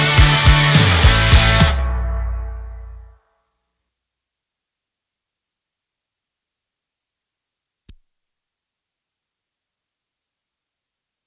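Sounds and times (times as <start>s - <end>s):
rock music: 0.0s - 3.1s.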